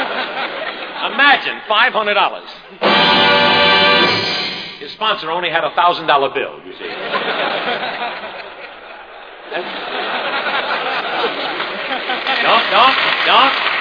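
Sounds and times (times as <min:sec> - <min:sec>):
laughter: 0:00.0 - 0:01.2, 0:06.8 - 0:13.1
speech: 0:01.2 - 0:03.6, 0:04.8 - 0:08.4, 0:09.5 - 0:10.2, 0:12.4 - 0:13.7
audience applause: 0:10.8 - 0:13.7.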